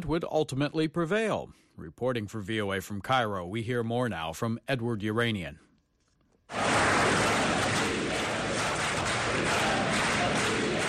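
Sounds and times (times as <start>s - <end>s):
speech: 0.0s - 5.7s
large crowd applauding at a speech: 6.5s - 10.8s.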